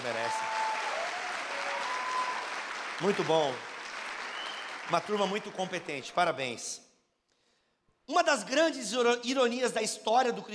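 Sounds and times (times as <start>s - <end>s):
audience applause: 0.0s - 6.6s
speech: 3.0s - 3.7s, 4.9s - 6.8s, 8.1s - 10.5s.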